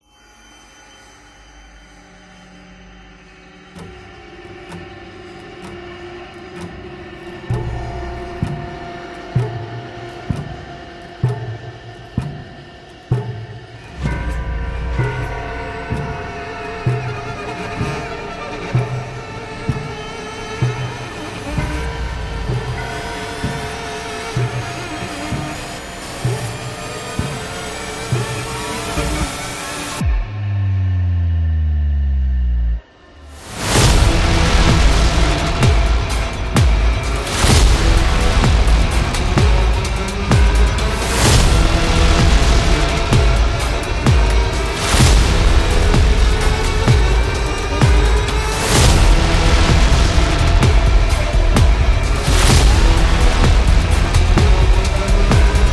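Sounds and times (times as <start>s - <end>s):
frightening sound: 12.5s - 55.7s.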